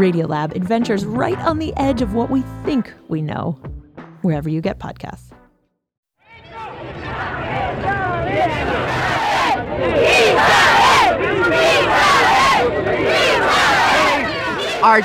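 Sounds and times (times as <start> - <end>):
speech: 0.0 - 5.3, 14.8 - 15.0
crowd of protesters in Buenos Aires chanting and shouting against 1976 military coup: 6.3 - 15.0.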